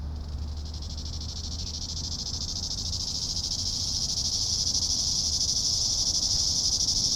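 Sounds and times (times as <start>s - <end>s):
cicadas buzzing in a high hissing drone: 0.1s - 7.1s.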